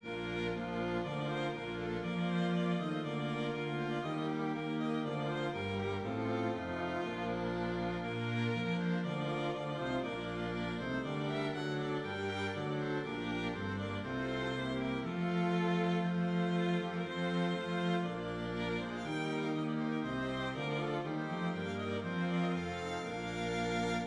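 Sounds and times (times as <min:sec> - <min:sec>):
strings playing a hymn: 0:00.0 - 0:24.0.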